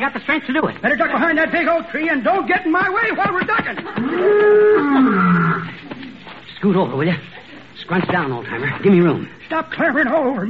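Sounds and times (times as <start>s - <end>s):
speech: 0.0s - 5.7s, 6.6s - 10.4s
laughter: 3.1s - 5.8s
lion roaring: 4.0s - 5.8s.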